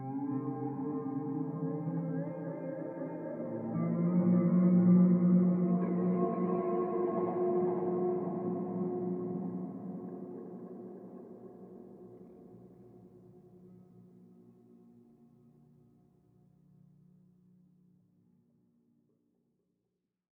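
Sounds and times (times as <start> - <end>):
ambient spacey guitar drone: 0.0 - 11.7.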